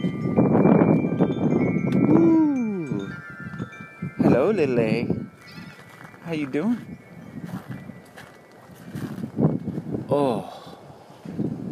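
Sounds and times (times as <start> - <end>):
wind chimes ringing in the wind: 0.0 - 10.4
speech: 4.4 - 5.2, 6.3 - 7.0, 10.1 - 10.5.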